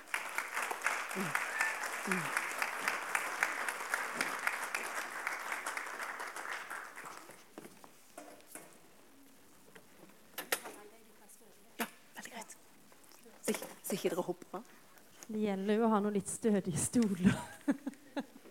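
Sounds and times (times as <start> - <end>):
audience applause: 0.0 - 7.5
speech: 1.2 - 1.4, 2.0 - 2.4, 13.9 - 17.9
laughter: 2.0 - 2.4, 17.2 - 18.5.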